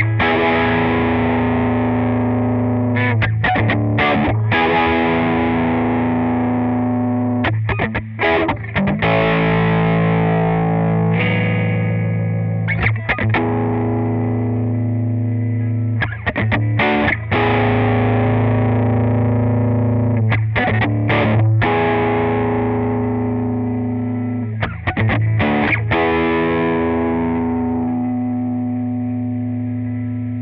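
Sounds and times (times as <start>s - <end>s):
distorted electric guitar riff in E: 0.0s - 30.4s.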